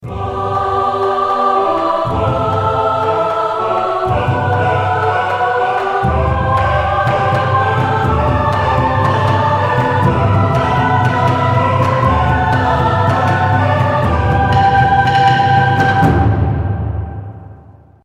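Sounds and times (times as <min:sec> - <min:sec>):
dramatic choral climax: 0:00.0 - 0:18.0.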